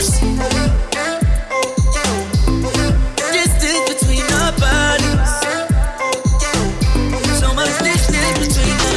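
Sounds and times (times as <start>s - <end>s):
funk music: 0.0s - 8.9s.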